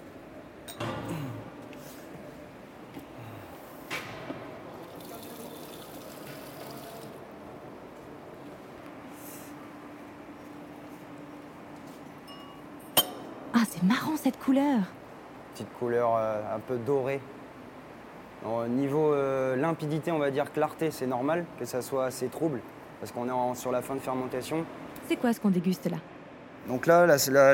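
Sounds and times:
low noise: 0:00.0 - 0:27.5
glass clinks: 0:12.2 - 0:13.3
speech: 0:13.7 - 0:15.0, 0:15.6 - 0:17.4, 0:18.4 - 0:27.5.

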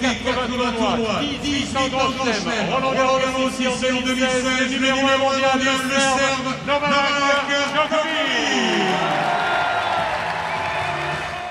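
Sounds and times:
speech: 0:00.4 - 0:09.4
crowd applauding players' arrival: 0:07.9 - 0:11.4.

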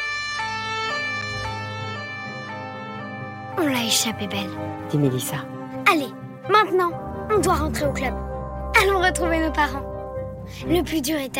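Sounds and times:
police car siren wailing as it drives off: 0:00.0 - 0:04.9
speech: 0:03.6 - 0:06.1, 0:06.7 - 0:08.3, 0:09.0 - 0:09.9, 0:10.5 - 0:11.3.

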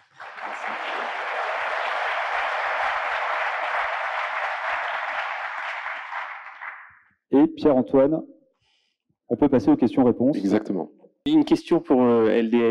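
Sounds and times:
audience applause: 0:00.0 - 0:07.0
speech: 0:07.3 - 0:08.3, 0:09.3 - 0:12.6.

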